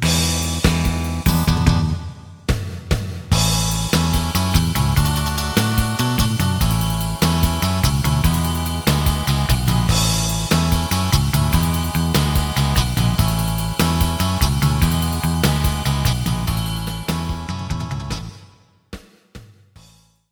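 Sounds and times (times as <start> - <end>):
lead melody: 0.2 - 2.1, 3.4 - 18.4.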